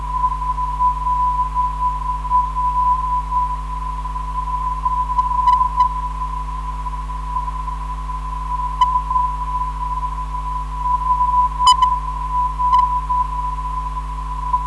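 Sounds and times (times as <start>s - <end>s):
non-directional beacon signal: 0.0s - 14.6s.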